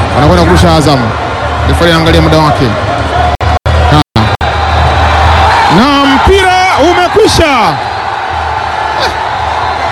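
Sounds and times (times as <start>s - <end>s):
Simba football players and staff cheering after winning the championship: 0.0s - 9.9s
speech: 0.2s - 3.3s, 5.8s - 6.6s
high whoop: 8.8s - 9.6s.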